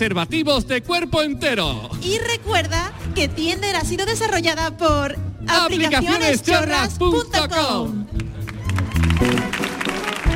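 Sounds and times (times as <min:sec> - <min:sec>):
speech: 0:00.0 - 0:08.2
audience applause: 0:08.1 - 0:10.3.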